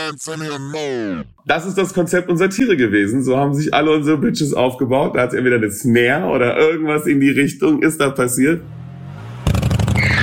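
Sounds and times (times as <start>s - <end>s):
speech: 0.1s - 8.8s
motorcycle engine revving: 8.6s - 10.1s.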